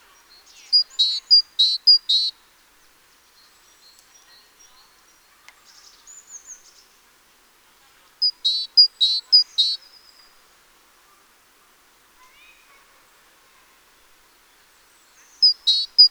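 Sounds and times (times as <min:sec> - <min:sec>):
great tit Parus major calls: 0:00.4 - 0:02.3, 0:08.2 - 0:09.8, 0:15.2 - 0:16.0.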